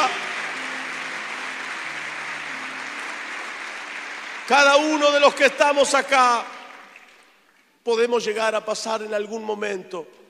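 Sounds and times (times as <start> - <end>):
audience applauding: 0.0 - 7.5
speech: 4.5 - 6.6, 7.9 - 10.2.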